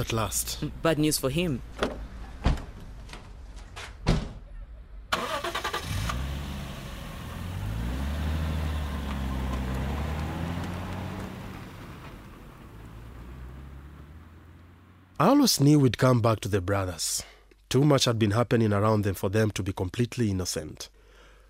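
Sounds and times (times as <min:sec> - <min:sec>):
speech: 0:00.0 - 0:01.9, 0:15.4 - 0:21.0
car engine starting and running as the car drives off: 0:05.1 - 0:15.2.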